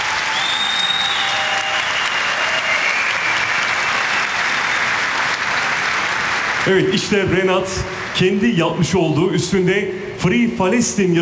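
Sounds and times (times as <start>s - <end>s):
audience clapping at a ceremony with the Turkish President: 0.0s - 8.6s
speech: 6.6s - 11.2s.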